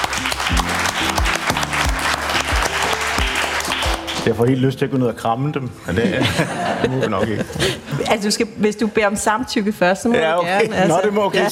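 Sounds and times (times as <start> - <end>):
steady low thumping beat: 0.0 - 4.1
crowd clapping and cheering: 0.0 - 4.7
speech: 4.2 - 11.5
laughter: 5.9 - 8.0.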